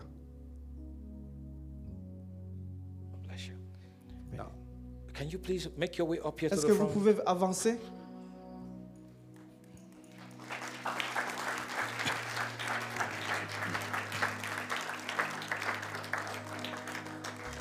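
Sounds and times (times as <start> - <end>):
speech: 3.4 - 3.6, 5.2 - 8.0
audience clapping: 9.4 - 17.5.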